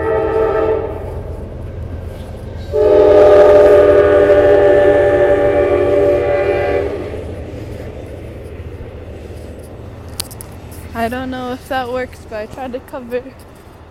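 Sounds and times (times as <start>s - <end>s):
passing train horn blasts: 0.0s - 1.3s, 2.6s - 7.3s
passing train rumbling on rails: 0.0s - 13.9s
speech: 11.1s - 13.9s.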